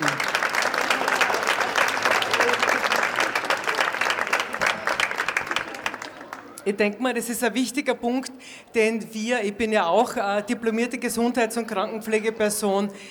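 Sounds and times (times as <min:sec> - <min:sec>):
audience applause for dancers: 0:00.0 - 0:06.6
speech: 0:06.6 - 0:13.0.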